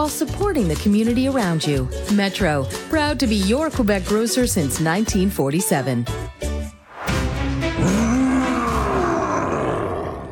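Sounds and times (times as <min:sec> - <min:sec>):
speech: 0:00.0 - 0:06.4
monster roar: 0:07.7 - 0:10.2.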